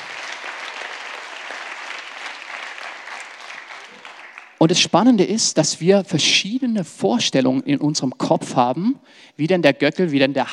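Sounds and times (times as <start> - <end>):
audience applause: 0.0 - 4.6
speech: 4.6 - 10.5.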